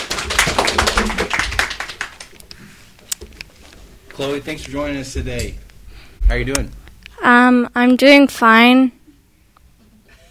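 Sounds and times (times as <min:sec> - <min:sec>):
children clapping: 0:00.0 - 0:02.6
speech: 0:04.2 - 0:05.6, 0:06.3 - 0:09.0.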